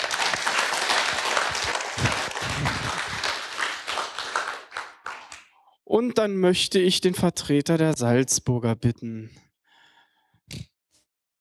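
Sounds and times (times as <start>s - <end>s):
audience applause: 0.0s - 5.4s
speech: 5.9s - 9.4s, 10.5s - 10.7s.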